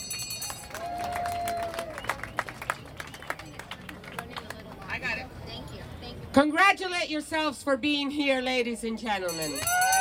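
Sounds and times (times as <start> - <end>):
crowd noise and talk: 0.0 - 10.0
sparse audience applause at a community event: 0.5 - 4.8
speech: 6.4 - 9.8.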